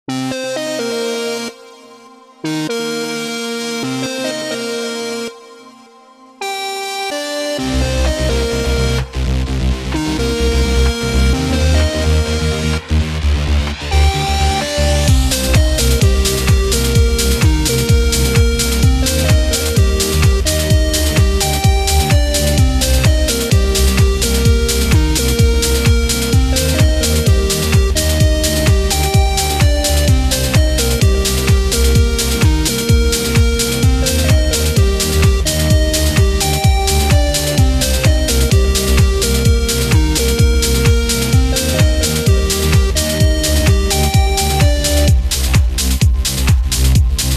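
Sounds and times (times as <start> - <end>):
trance music: 0.0 - 47.3.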